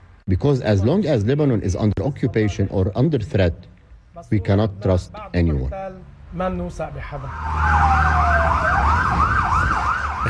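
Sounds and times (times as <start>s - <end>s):
speech: 0.3s - 9.3s
emergency vehicle siren wailing: 7.1s - 10.2s.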